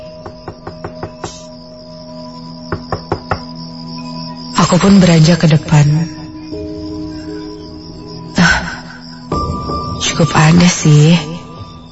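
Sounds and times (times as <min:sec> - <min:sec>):
knuckles knocking on a house door at night: 0:00.2 - 0:01.5, 0:02.7 - 0:03.6
speech: 0:04.7 - 0:06.2, 0:10.2 - 0:11.3.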